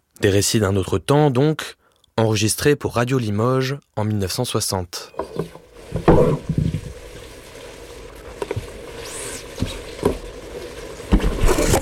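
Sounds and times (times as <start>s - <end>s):
speech: 0.2s - 6.5s
rabbit stew bubbling in a village kitchen: 5.2s - 11.8s.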